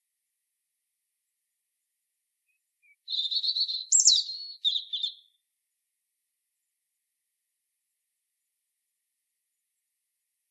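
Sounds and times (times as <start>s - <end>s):
European robin singing: 2.5s - 5.4s.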